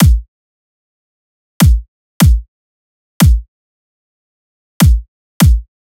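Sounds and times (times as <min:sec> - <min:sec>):
dubstep kick drum loop: 0:00.0 - 0:00.3, 0:01.6 - 0:02.4, 0:03.2 - 0:03.4, 0:04.8 - 0:05.7.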